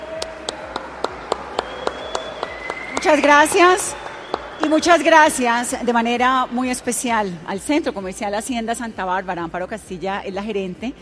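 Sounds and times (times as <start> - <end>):
audience clapping at an event in a shopping centre: 0.0 - 6.0
speech: 3.0 - 4.0, 4.6 - 10.9.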